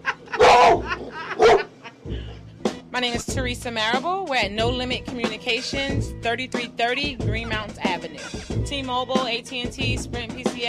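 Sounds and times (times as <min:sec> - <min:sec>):
laughter: 0:00.0 - 0:02.4
tough-looking female dog barking: 0:00.3 - 0:01.7
speech: 0:03.0 - 0:10.6.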